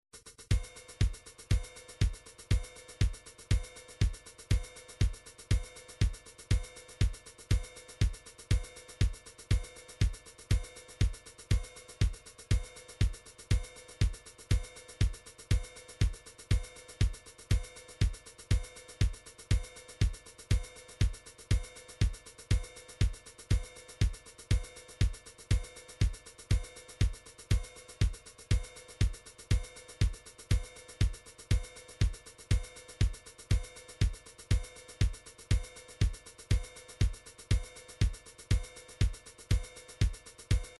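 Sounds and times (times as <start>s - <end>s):
MIDI drums: 0.5s - 40.7s.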